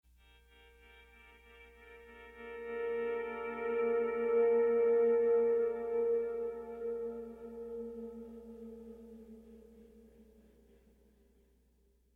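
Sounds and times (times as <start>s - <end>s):
pleasant guitar playing: 0.3s - 9.9s.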